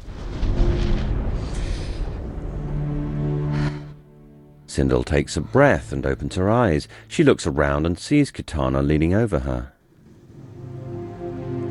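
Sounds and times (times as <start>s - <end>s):
thunder crash with lightning: 0.0s - 4.0s
speech: 4.8s - 9.7s.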